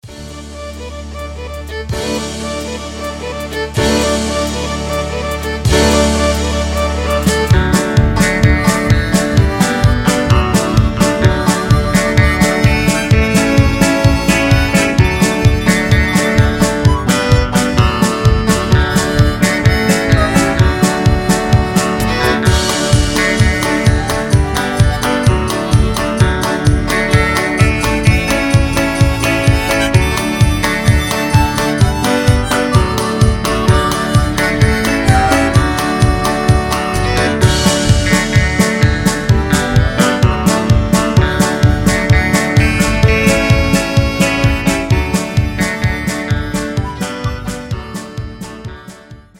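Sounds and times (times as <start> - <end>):
instrumental hymn: 0.0 - 49.3.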